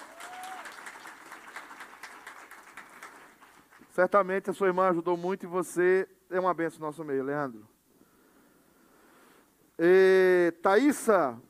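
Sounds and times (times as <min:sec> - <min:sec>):
audience applauding: 0:00.0 - 0:03.9
speech: 0:04.0 - 0:07.7, 0:09.8 - 0:11.4.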